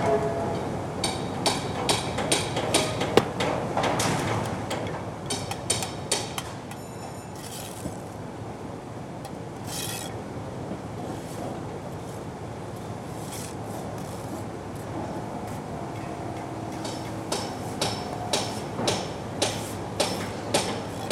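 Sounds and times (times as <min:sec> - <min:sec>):
building site interior ambience: 0:00.5 - 0:21.1
bricklayers working inside building under construction: 0:01.1 - 0:21.1.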